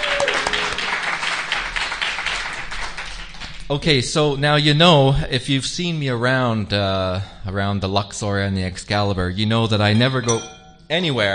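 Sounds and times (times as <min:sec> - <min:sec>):
audience round of applause: 0:00.0 - 0:03.6
speech: 0:03.7 - 0:11.3.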